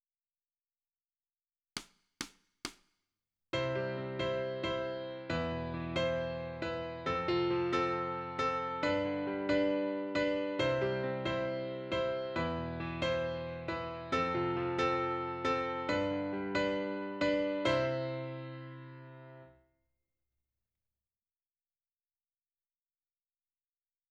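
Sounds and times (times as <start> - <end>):
piano: 3.6 - 19.6.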